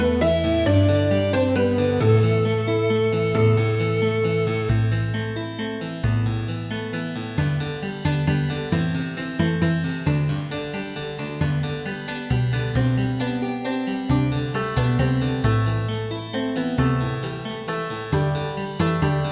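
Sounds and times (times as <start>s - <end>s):
music with reduced bass: 0.0s - 10.7s, 11.4s - 19.2s.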